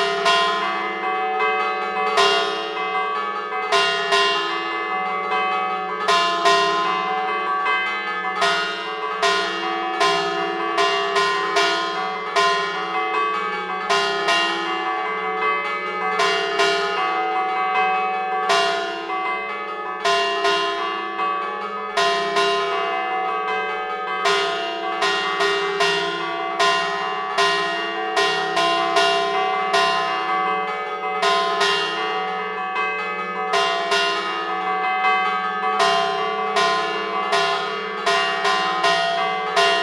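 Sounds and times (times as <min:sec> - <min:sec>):
sanctuary church bells in Montegrazie Liguria: 0:00.0 - 0:39.8.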